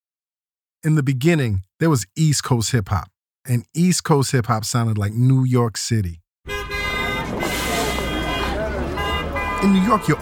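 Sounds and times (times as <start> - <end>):
speech: 0.8 - 6.6, 9.6 - 10.2
car horns honking in city street traffic: 6.5 - 10.2
street traffic noise: 6.5 - 10.2
indistinct voices shouting: 6.9 - 10.2.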